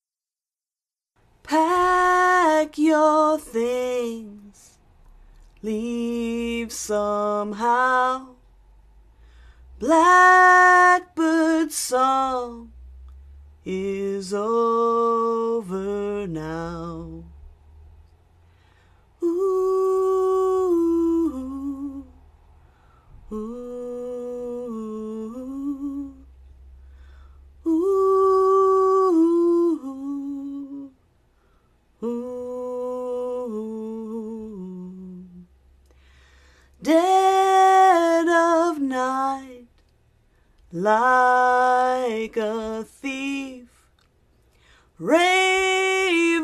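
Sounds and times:
woman singing a song cover: 0:01.4 - 0:04.8, 0:05.6 - 0:08.5, 0:09.7 - 0:12.8, 0:13.6 - 0:17.4, 0:19.2 - 0:22.2, 0:23.1 - 0:26.4, 0:27.5 - 0:31.0, 0:31.9 - 0:39.8, 0:40.6 - 0:44.0, 0:44.9 - 0:46.4.

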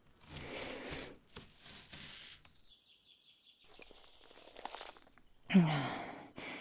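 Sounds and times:
knife cutting through bone: 0:00.0 - 0:02.5, 0:03.7 - 0:05.5.

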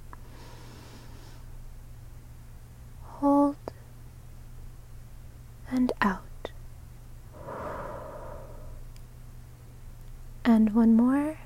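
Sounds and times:
soft breath intake during a guided breathing exercise: 0:00.3 - 0:01.5, 0:07.4 - 0:08.9
low steady hum: 0:01.0 - 0:11.4
speech: 0:10.7 - 0:11.4.

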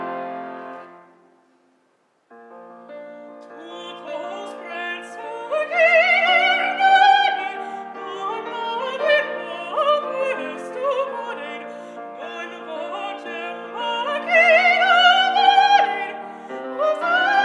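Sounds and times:
woman singing coloratura opera aria: 0:03.4 - 0:17.3.

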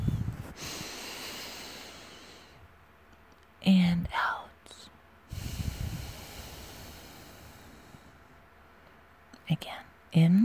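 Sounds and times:
person breathing in deeply during a calming exercise: 0:00.0 - 0:02.6, 0:05.3 - 0:08.2
speech: 0:10.2 - 0:10.4.

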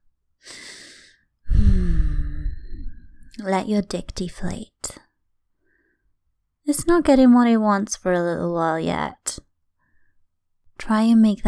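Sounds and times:
breathing in and out: 0:00.4 - 0:03.3, 0:05.6 - 0:06.2
speech: 0:03.4 - 0:05.0, 0:06.7 - 0:09.5, 0:10.8 - 0:11.4.

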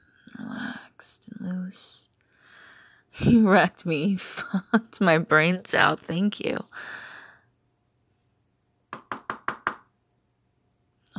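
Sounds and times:
speech: 0:01.0 - 0:02.2, 0:03.2 - 0:07.0
sharp knocks on a door: 0:08.9 - 0:09.9.

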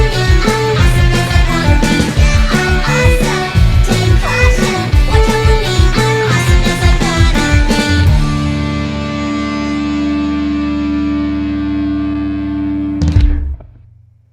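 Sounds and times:
violin in a cover: 0:00.0 - 0:08.6
drums in a cover: 0:00.0 - 0:10.3, 0:13.0 - 0:13.8
bass in a cover: 0:00.0 - 0:14.3.

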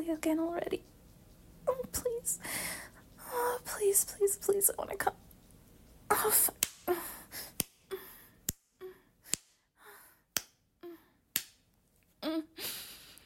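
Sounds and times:
speech: 0:00.1 - 0:01.0, 0:01.7 - 0:05.2, 0:06.1 - 0:07.0
hand slapping skin: 0:06.5 - 0:09.6, 0:10.3 - 0:10.6, 0:11.3 - 0:11.7.

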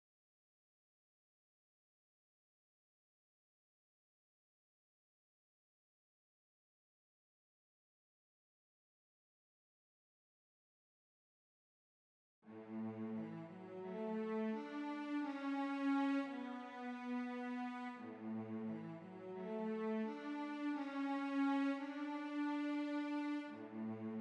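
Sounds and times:
string cellos playing: 0:12.5 - 0:24.1.

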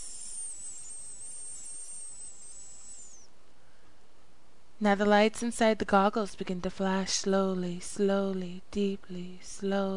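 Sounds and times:
escaping gas hissing: 0:00.0 - 0:03.3
speech: 0:04.8 - 0:09.9.

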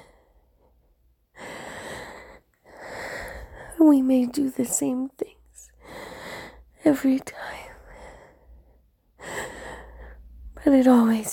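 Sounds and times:
heavy breathing: 0:00.0 - 0:00.8, 0:01.4 - 0:03.8, 0:05.7 - 0:06.8, 0:07.6 - 0:10.3
speech: 0:03.8 - 0:05.4, 0:06.8 - 0:07.5, 0:10.6 - 0:11.3.

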